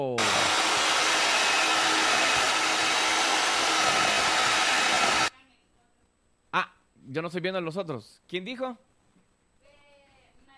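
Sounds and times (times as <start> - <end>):
electric mixer running: 0.0 - 5.3
speech: 7.1 - 8.9.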